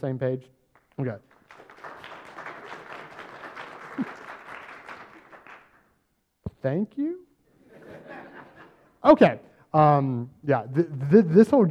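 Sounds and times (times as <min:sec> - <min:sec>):
speech: 0:00.0 - 0:01.6, 0:06.6 - 0:07.3, 0:09.0 - 0:11.6
audience clapping: 0:00.7 - 0:06.0
laughter: 0:03.7 - 0:04.5, 0:07.6 - 0:09.0.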